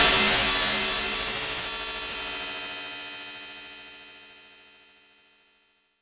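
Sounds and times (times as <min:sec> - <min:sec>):
noise: 0:00.0 - 0:02.6.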